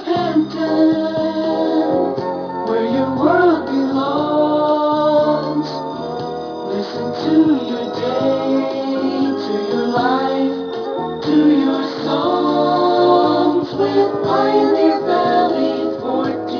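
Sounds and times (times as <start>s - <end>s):
jingle: 0.3s - 16.5s.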